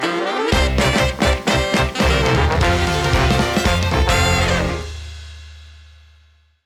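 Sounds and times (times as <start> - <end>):
win jingle: 0.5 - 4.9.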